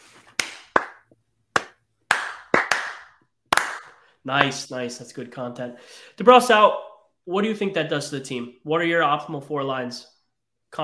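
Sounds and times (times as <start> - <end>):
slow clapping: 0.2 - 4.6
speech: 4.2 - 10.1.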